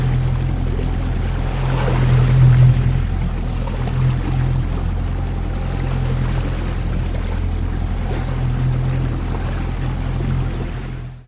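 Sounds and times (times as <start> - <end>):
16 ft fiberglass boat driving slowly on slightly choppy sea: 0.0 - 11.2
outboard motor driving a 16 ft fiberglass boat slowly on slightly choppy sea: 0.0 - 11.2.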